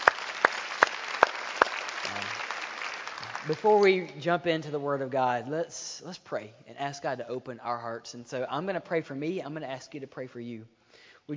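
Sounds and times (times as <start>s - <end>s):
warm round of applause: 0.0s - 4.0s
speech: 3.4s - 11.3s.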